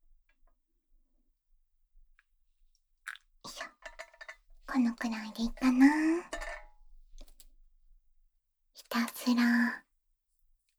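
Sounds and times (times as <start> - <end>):
faint ticks and light crunchy clicks while making coffee by hand: 2.2 - 7.6
speech: 4.8 - 6.4, 9.3 - 9.8.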